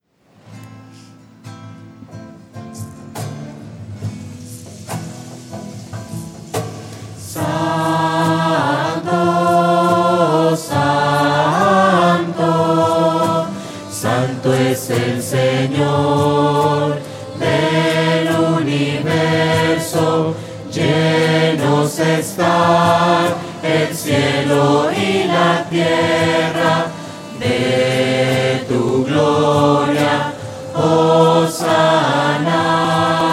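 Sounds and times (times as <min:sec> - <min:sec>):
slow sad voices: 0:07.2 - 0:33.3.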